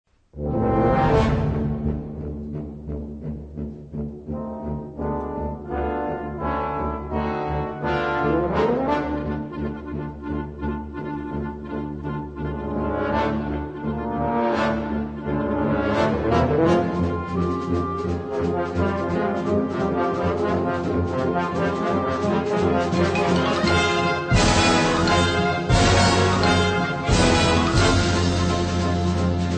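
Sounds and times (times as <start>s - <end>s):
tuba concertino: 0.2s - 29.5s.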